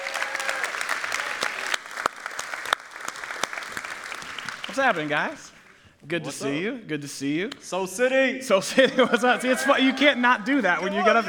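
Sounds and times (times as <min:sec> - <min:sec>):
church audience applause as guests walk up on stage: 0:00.0 - 0:05.7
speech: 0:04.8 - 0:11.2
laughter: 0:08.6 - 0:11.2.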